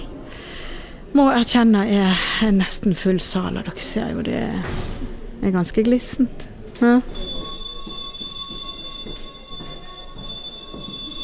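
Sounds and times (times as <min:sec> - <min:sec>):
low murmur: 0:00.0 - 0:11.2
speech: 0:01.1 - 0:07.4
theatre foyer bell ringing: 0:07.1 - 0:11.2.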